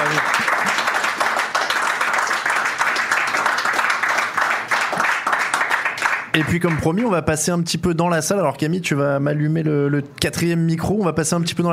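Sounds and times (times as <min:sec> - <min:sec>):
audience applause: 0:00.0 - 0:07.0
speech: 0:06.4 - 0:11.7.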